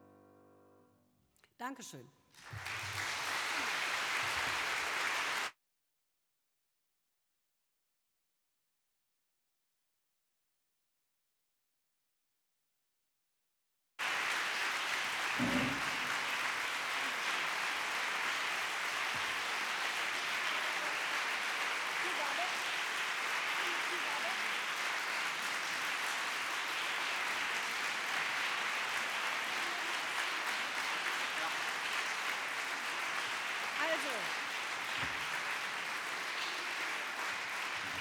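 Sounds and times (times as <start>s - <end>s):
speech: 1.6s - 2.6s
audience applause: 2.4s - 5.5s, 14.0s - 37.9s.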